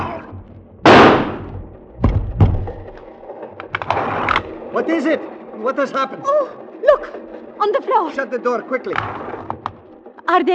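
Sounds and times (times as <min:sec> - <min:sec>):
sharp knocks: 0:00.1 - 0:04.5
gunshot: 0:00.8 - 0:01.7
speech: 0:04.8 - 0:09.2, 0:10.3 - 0:10.5.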